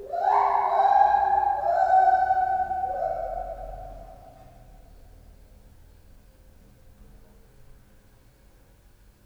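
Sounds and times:
lar gibbon calling with echo at a zoo: 0:00.0 - 0:04.4.

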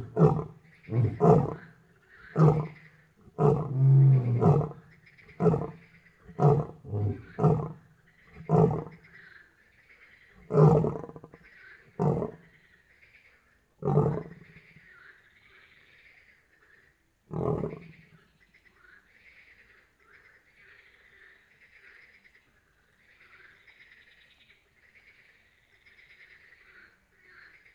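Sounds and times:
lion roaring at night in Jászberény zoo: 0:00.0 - 0:01.7, 0:02.3 - 0:04.8, 0:05.4 - 0:07.8, 0:08.4 - 0:09.0, 0:10.5 - 0:11.3, 0:12.0 - 0:12.4, 0:13.8 - 0:14.4, 0:17.3 - 0:17.9.

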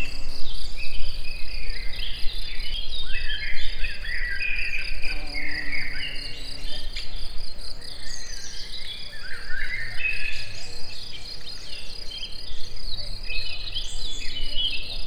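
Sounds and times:
insects in nature: 0:00.0 - 0:15.0.

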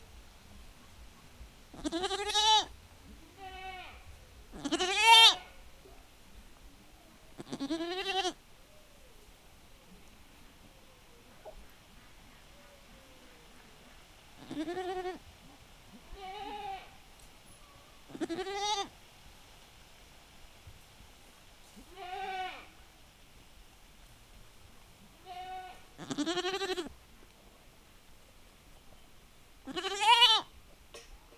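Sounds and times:
wind: 0:00.0 - 0:31.3
goat bleating: 0:01.7 - 0:02.7, 0:03.4 - 0:05.6, 0:07.4 - 0:08.4, 0:14.4 - 0:15.2, 0:16.1 - 0:16.9, 0:18.1 - 0:18.9, 0:21.9 - 0:22.7, 0:25.2 - 0:26.9, 0:29.6 - 0:30.5.

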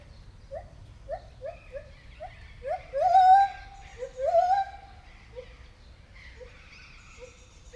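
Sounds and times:
white-handed gibbon whooping and hooting at a zoo: 0:00.5 - 0:05.6.

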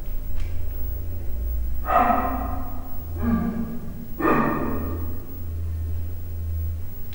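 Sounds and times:
three-month-old captive leopard cub chirping in a zoo: 0:00.2 - 0:07.0.

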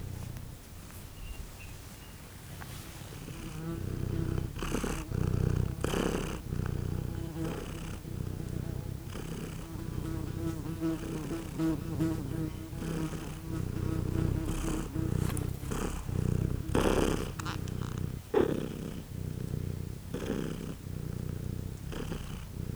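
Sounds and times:
cat purring in a farmyard: 0:00.0 - 0:22.7
fly in a farmyard: 0:03.4 - 0:17.7.

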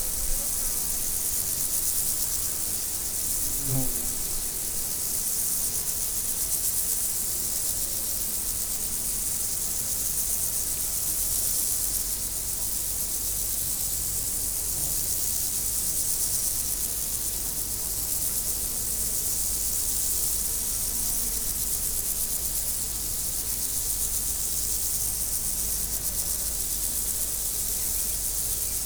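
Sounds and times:
insects buzzing in a steady high-pitched chorus at Várbóc: 0:00.0 - 0:28.8.

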